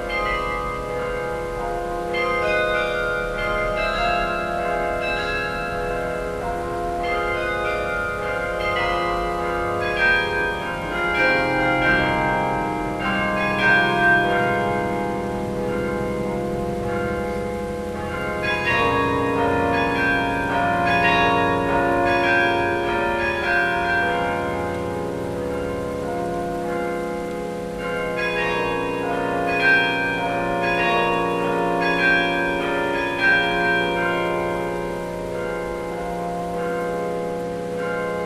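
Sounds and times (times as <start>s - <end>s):
carillon concert: 0.0s - 38.2s.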